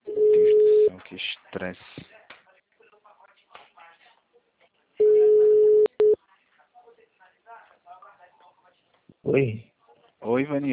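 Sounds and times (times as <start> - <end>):
telephone tone after a dropped call: 0.1 - 0.9, 5.0 - 6.2
speech: 9.4 - 9.7, 10.3 - 10.7.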